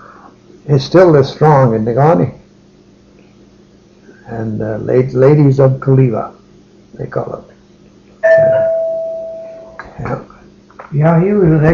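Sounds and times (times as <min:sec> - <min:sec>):
speech: 0:00.6 - 0:02.4, 0:04.4 - 0:06.4, 0:07.0 - 0:07.5, 0:10.0 - 0:10.3, 0:10.9 - 0:11.7
doorbell chime: 0:08.2 - 0:09.8.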